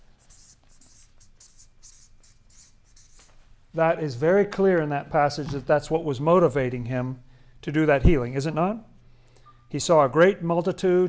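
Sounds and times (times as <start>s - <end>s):
pen strokes writing a word: 0.0s - 3.3s
speech: 3.8s - 8.9s, 9.7s - 11.0s.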